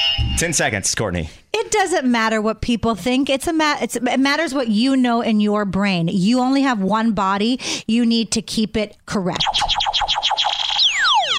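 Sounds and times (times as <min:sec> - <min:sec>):
game show wrong buzzer effect: 0:00.0 - 0:00.8
speech: 0:00.4 - 0:10.5.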